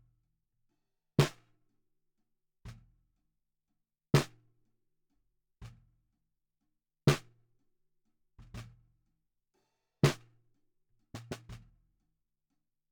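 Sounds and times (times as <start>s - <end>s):
bottom snare drum: 1.2s - 1.4s, 4.1s - 4.3s, 10.1s - 10.3s, 11.1s - 11.7s.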